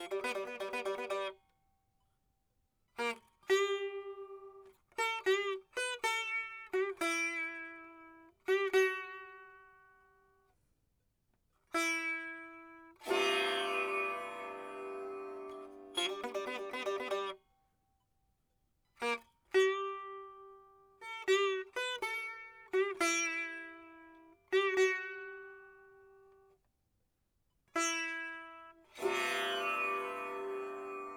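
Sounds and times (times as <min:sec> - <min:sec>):
sitar: 0:00.0 - 0:01.4, 0:03.0 - 0:09.8, 0:11.8 - 0:17.4, 0:19.0 - 0:26.2, 0:27.8 - 0:31.1.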